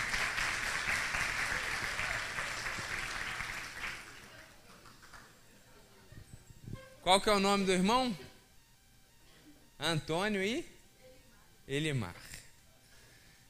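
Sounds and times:
audience applause: 0:00.0 - 0:05.4
speech: 0:07.1 - 0:08.2, 0:09.8 - 0:10.7, 0:11.7 - 0:12.3.

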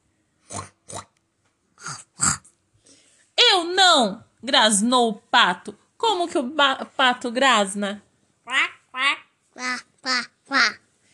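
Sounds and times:
voice imitating a pig grunting: 0:00.4 - 0:01.2, 0:01.8 - 0:02.6
speech: 0:04.0 - 0:10.8.

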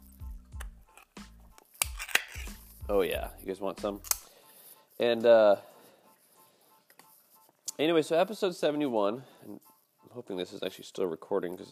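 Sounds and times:
can of cat food being opened: 0:00.6 - 0:02.8
speech: 0:02.9 - 0:04.2, 0:05.0 - 0:05.7, 0:07.8 - 0:11.6.

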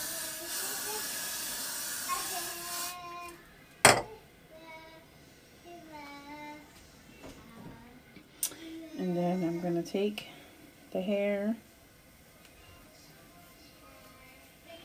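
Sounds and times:
hair spray hissing: 0:00.0 - 0:03.0
speech: 0:09.8 - 0:11.7.

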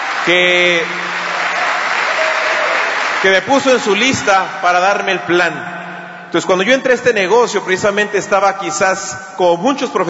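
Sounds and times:
audience applause: 0:00.0 - 0:04.2
speech: 0:00.2 - 0:01.1, 0:03.2 - 0:05.7, 0:06.3 - 0:10.0.

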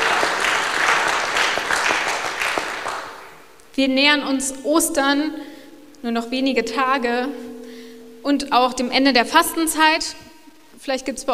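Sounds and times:
audience applause: 0:00.0 - 0:03.4
speech: 0:03.8 - 0:07.5, 0:08.2 - 0:11.3.

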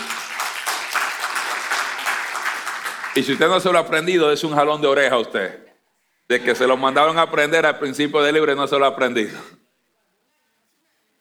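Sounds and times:
audience applauding: 0:00.0 - 0:03.8
speech: 0:03.2 - 0:05.7, 0:06.3 - 0:09.6.

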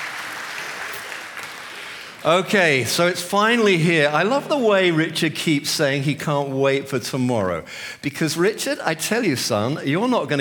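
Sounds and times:
audience applause: 0:00.0 - 0:02.9
speech: 0:02.2 - 0:10.3.

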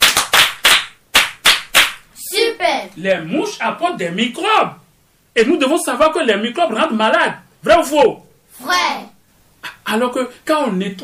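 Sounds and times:
applause for a pupil: 0:00.0 - 0:02.1
speech: 0:02.8 - 0:04.8, 0:05.4 - 0:09.1, 0:09.9 - 0:11.0.

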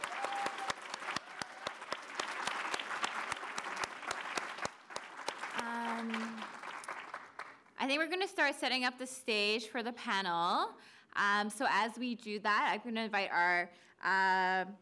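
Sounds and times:
room full of people clapping: 0:00.0 - 0:07.8
speech: 0:07.9 - 0:14.7.

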